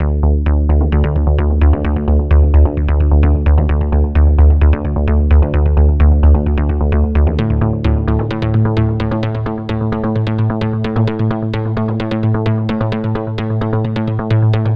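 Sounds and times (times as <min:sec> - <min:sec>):
afterhours EDM bass arpeggiation: 0:00.0 - 0:14.7.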